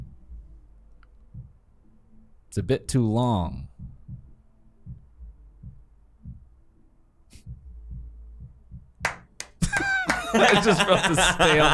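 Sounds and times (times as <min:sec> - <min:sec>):
music thumping from next door: 0:01.3 - 0:01.6, 0:03.7 - 0:06.6, 0:07.3 - 0:11.3
speech: 0:02.5 - 0:03.7, 0:10.3 - 0:11.7
laughter: 0:09.6 - 0:11.7.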